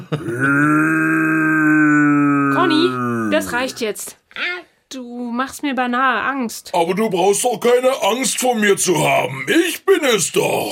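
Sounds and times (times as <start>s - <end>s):
speech: 0.1s - 1.2s, 2.6s - 10.7s
person imitating a bear's roar: 0.1s - 4.0s.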